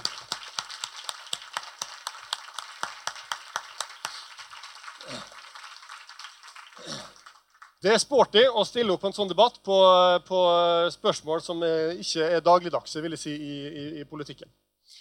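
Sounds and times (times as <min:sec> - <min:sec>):
audience applause: 0:00.0 - 0:07.8
speech: 0:07.8 - 0:14.6.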